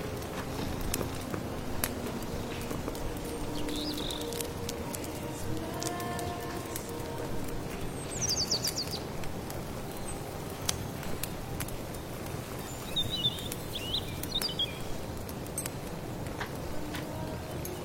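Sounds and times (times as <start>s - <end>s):
crackling pops: 0.0s - 17.2s
low rumble and hiss: 0.0s - 17.8s
bird chirps: 3.4s - 4.4s, 7.9s - 9.0s, 12.6s - 15.0s.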